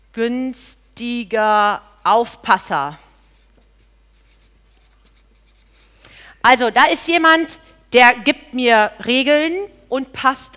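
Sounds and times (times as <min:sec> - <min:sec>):
speech: 0:00.2 - 0:03.0, 0:06.4 - 0:10.5
writing on a board: 0:02.9 - 0:05.9.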